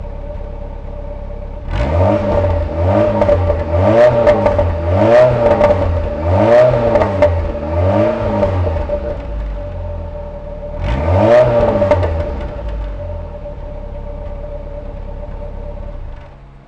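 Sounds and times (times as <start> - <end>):
GTI 1600 car engine: 0.0 - 16.6.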